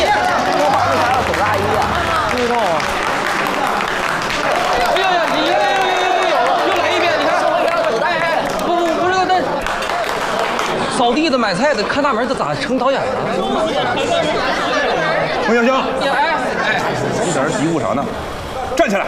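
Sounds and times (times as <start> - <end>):
audience applause welcoming four directors: 0.0 - 11.6
crowd voices: 0.0 - 19.0
speech: 11.2 - 14.8, 15.5 - 16.2, 16.8 - 19.0.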